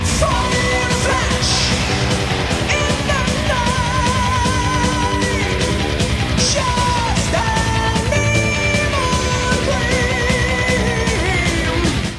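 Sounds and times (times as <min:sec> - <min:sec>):
rock song with high male vocals: 0:00.0 - 0:12.1.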